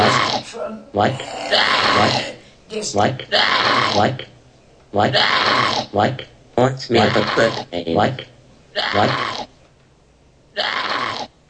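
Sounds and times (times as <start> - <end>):
sheep bleating: 0.0 - 0.4, 1.4 - 2.3, 3.3 - 4.1, 5.1 - 5.9, 7.0 - 9.5, 10.6 - 11.3
speech: 0.7 - 4.3, 4.9 - 9.5, 10.6 - 11.3.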